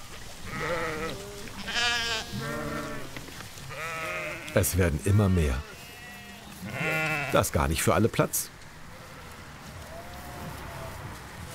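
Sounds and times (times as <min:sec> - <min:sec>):
sheep bleating around a water trough: 0:00.5 - 0:07.5, 0:08.9 - 0:11.0
speech: 0:04.6 - 0:05.7, 0:07.3 - 0:08.5.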